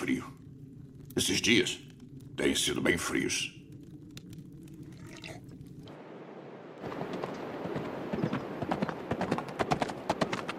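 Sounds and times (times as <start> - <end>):
speech: 1.2 - 3.6
horse hooves cantering: 6.8 - 10.5.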